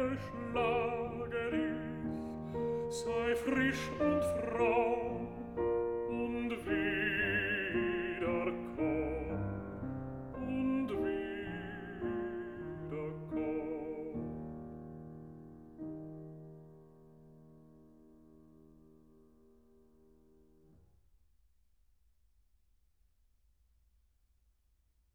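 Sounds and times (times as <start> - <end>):
person singing: 0.0 - 14.5
piano: 0.0 - 21.3.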